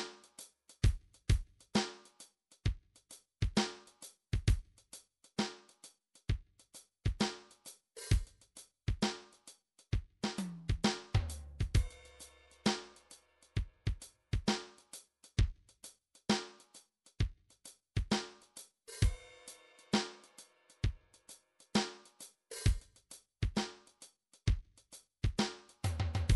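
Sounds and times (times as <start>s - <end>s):
MIDI drums playing a soft rock half time triplet feel beat: 0.0s - 26.3s.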